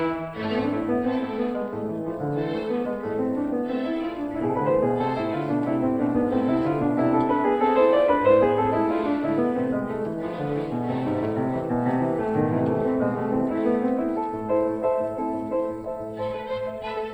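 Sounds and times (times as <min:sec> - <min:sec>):
piano version of a harpsichord concerto in D minor: 0:00.0 - 0:17.1.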